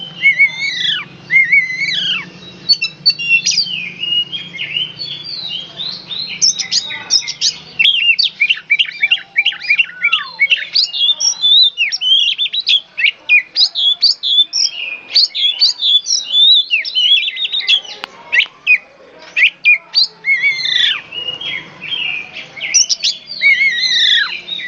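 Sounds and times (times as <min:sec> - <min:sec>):
Oriental magpie-robin delivering loud varied whistled phrases: 0:00.0 - 0:24.6.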